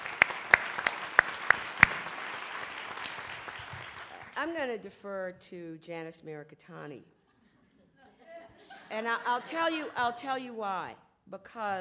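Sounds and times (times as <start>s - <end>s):
sparse audience applause: 0.0s - 4.4s
soft hiss: 4.1s - 11.8s
speech: 4.4s - 7.2s, 8.9s - 11.8s.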